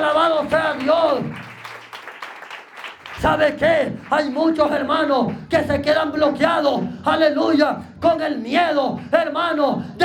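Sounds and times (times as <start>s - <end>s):
audience applause: 0.0s - 4.8s
speech: 3.2s - 10.0s.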